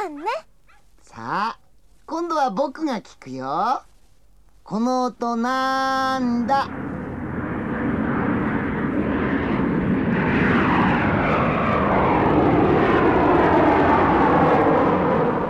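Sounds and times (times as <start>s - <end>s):
speech: 0.0s - 0.5s, 1.1s - 3.9s, 4.7s - 6.9s
jet airplane engine: 6.1s - 15.4s.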